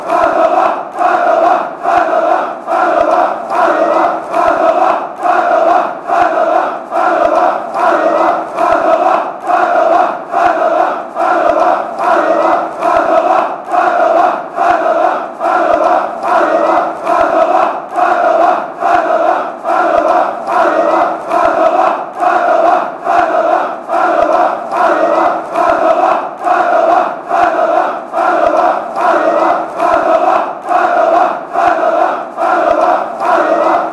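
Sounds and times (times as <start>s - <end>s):
people chanting: 0.0s - 33.9s
people clapping: 0.0s - 33.9s.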